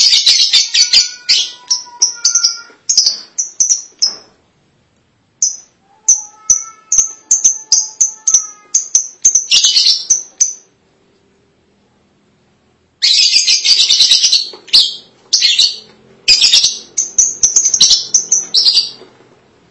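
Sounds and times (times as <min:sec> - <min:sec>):
lovebird chirping: 0:00.0 - 0:04.3, 0:05.4 - 0:10.7, 0:13.0 - 0:19.1.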